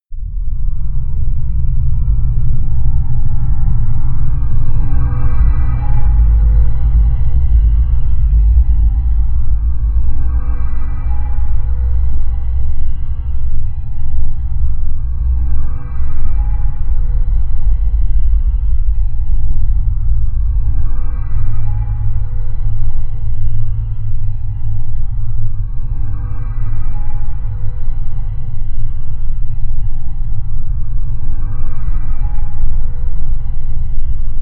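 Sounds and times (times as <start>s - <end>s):
panic drone sound: 0.1s - 34.4s.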